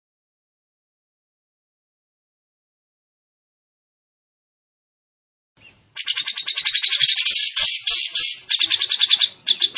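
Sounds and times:
training bird song with rapid high rattling notes and buzzy trills: 0:05.6 - 0:09.7.

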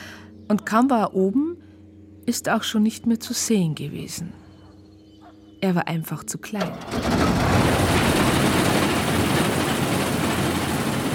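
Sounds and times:
speech: 0:00.5 - 0:01.6, 0:02.3 - 0:04.4, 0:05.6 - 0:07.6
combine harvester engine starting and rattling: 0:06.5 - 0:11.1.

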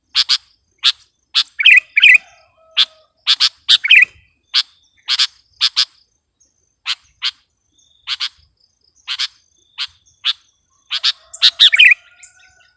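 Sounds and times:
sooty-headed bulbul chirping and warbling: 0:00.1 - 0:06.0, 0:09.1 - 0:12.0.

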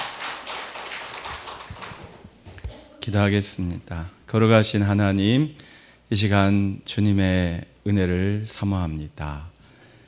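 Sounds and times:
audience applause: 0:00.0 - 0:02.3
speech: 0:03.1 - 0:09.5.

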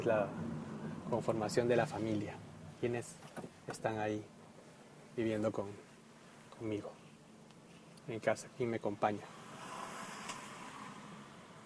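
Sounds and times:
speech: 0:00.0 - 0:00.5, 0:01.1 - 0:04.4, 0:05.2 - 0:05.9, 0:06.6 - 0:07.0, 0:08.0 - 0:09.4
cars passing on a very sharp road curve: 0:00.0 - 0:02.8, 0:09.2 - 0:11.6.

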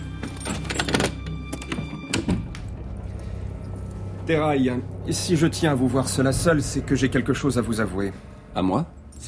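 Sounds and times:
door closing: 0:00.4 - 0:02.7
speech: 0:04.3 - 0:09.2.

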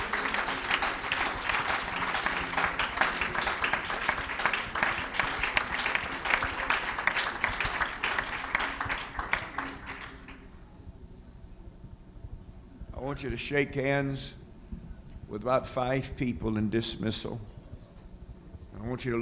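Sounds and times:
church congregation clapping hands to the Lord during a service: 0:00.0 - 0:10.5
speech: 0:13.2 - 0:14.4, 0:15.3 - 0:17.6, 0:18.9 - 0:19.2.

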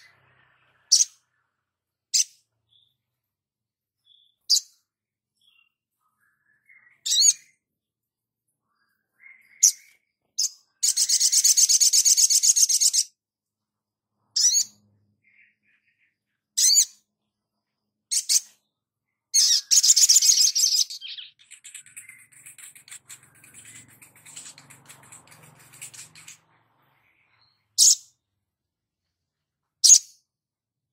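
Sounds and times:
spiderhunter song: 0:00.0 - 0:30.9.

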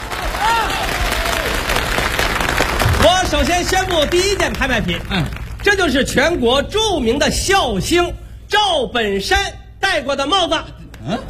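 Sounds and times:
audience clapping at the live auction in a 1993 Spring Festival Gala comedy sketch: 0:00.0 - 0:06.3
speech: 0:03.3 - 0:11.2.

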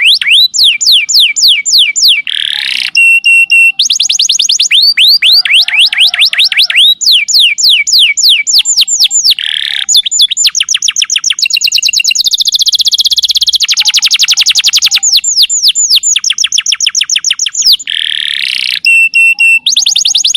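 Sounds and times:
young canary song: 0:00.0 - 0:20.3.

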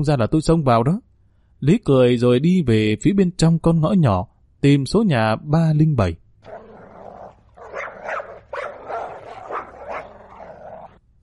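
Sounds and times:
speech: 0:00.0 - 0:06.2
yellow-furred dog barking at a house in a small alley: 0:07.6 - 0:11.0.

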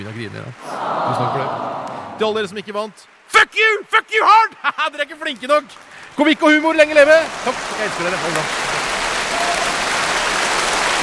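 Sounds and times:
audience applause at an awards acceptance: 0:00.0 - 0:03.3, 0:05.0 - 0:11.0
speech: 0:00.0 - 0:08.6.

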